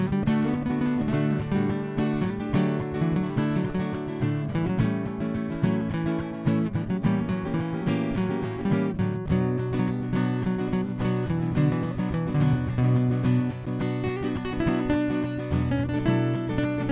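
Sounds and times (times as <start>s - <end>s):
latin chords and improvisation: 0.0s - 16.9s.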